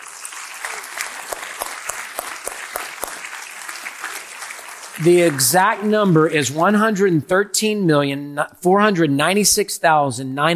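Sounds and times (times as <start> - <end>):
audience cheering: 0.0 - 7.1
speech: 5.0 - 10.5.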